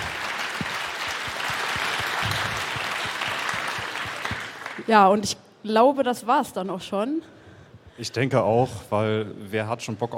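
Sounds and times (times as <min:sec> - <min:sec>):
audience applause: 0:00.0 - 0:04.9
speech: 0:04.9 - 0:07.4, 0:08.0 - 0:10.1.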